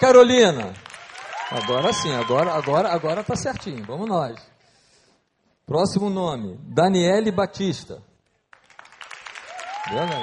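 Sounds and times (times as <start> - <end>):
speech: 0.0 - 0.9, 1.5 - 4.5, 5.7 - 8.1, 9.8 - 10.2
applause: 0.0 - 4.7, 8.5 - 10.2.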